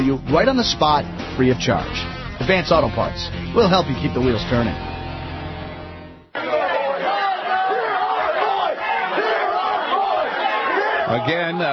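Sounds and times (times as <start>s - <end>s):
speech: 0.0s - 4.9s, 11.1s - 11.7s
large town hall crowd shouting and yelling: 6.3s - 11.7s.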